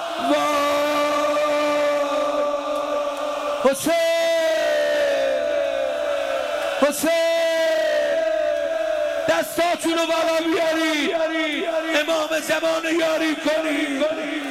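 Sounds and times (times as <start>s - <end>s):
crowd shouting on the night of Ashura: 0.0s - 10.1s
speech: 3.6s - 4.1s, 6.8s - 7.2s, 9.3s - 14.4s.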